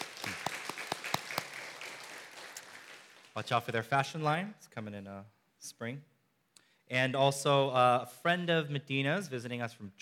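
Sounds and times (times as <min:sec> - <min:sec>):
church audience applause: 0:00.0 - 0:03.4
speech: 0:03.4 - 0:06.1, 0:06.9 - 0:10.0.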